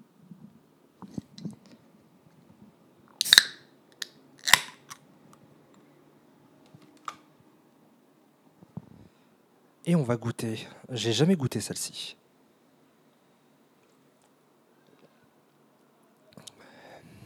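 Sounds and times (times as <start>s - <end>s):
snack bag crinkling and tearing open: 3.2s - 3.6s, 4.4s - 4.9s
speech: 9.8s - 12.2s.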